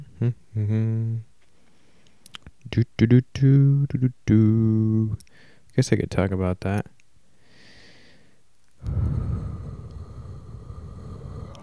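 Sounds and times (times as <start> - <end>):
speech: 0.2 - 1.3, 2.7 - 7.0
breath blowing into the microphone: 8.8 - 11.6.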